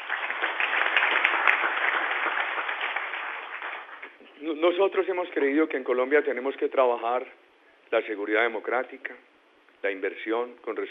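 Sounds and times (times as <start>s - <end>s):
audience applause: 0.0s - 4.1s
speech: 4.5s - 10.8s.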